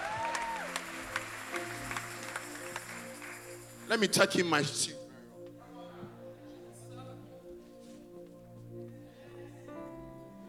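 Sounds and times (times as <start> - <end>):
audience clapping hands: 0.0 - 4.5
speech: 3.9 - 5.0.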